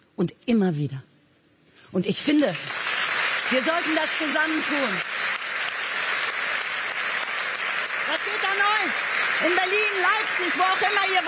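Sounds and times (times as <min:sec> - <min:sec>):
speech: 0:00.2 - 0:01.1, 0:01.9 - 0:02.8, 0:03.5 - 0:05.1, 0:08.6 - 0:11.2
applause from many hands: 0:02.2 - 0:11.2.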